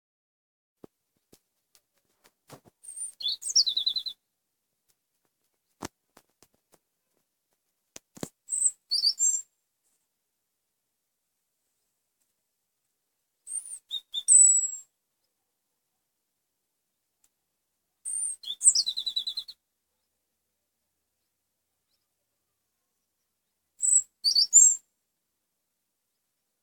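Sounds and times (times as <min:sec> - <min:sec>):
European robin singing: 0:02.8 - 0:04.2, 0:08.5 - 0:09.5, 0:13.5 - 0:14.9, 0:18.0 - 0:20.1, 0:23.8 - 0:24.9.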